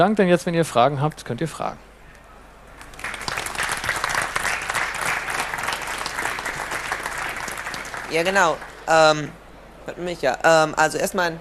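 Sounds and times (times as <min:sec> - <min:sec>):
speech: 0:00.0 - 0:01.9, 0:08.1 - 0:11.4
audience applause after a talk: 0:02.8 - 0:08.9.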